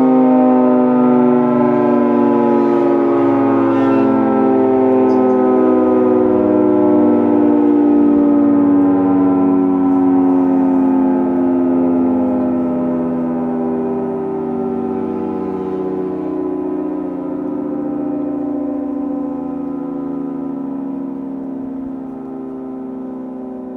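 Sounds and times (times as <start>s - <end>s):
attack siren: 0.0s - 23.7s.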